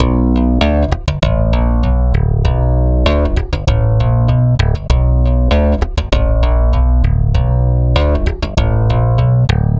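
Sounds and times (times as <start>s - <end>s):
stick bass loop: 0.0s - 9.7s.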